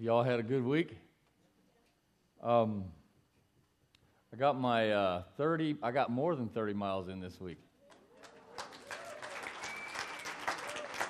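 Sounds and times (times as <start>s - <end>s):
speech: 0.0s - 1.1s, 2.4s - 3.0s, 4.3s - 7.7s
audience clapping: 7.9s - 11.0s.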